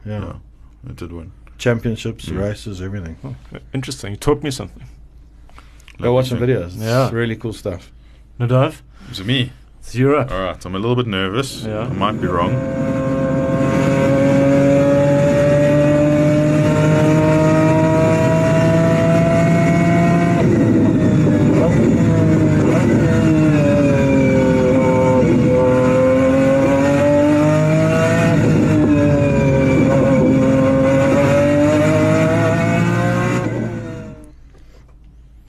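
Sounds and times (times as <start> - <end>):
speech: 0.0 - 5.0, 6.0 - 13.0
BMW V12 engine in a McLaren F1 car howling: 11.2 - 34.3.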